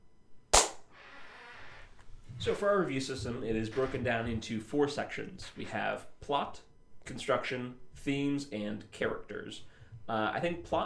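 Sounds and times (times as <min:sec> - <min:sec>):
hand clap: 0:00.6 - 0:00.8
speech: 0:02.4 - 0:10.8.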